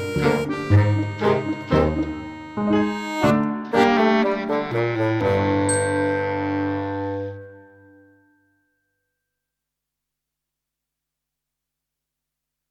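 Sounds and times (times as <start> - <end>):
fun brass music: 0.0 - 7.7.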